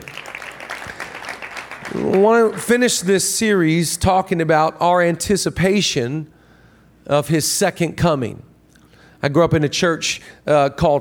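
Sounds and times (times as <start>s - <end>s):
audience clapping: 0.0s - 3.1s
speech: 1.9s - 6.4s, 7.1s - 8.5s, 9.2s - 10.9s.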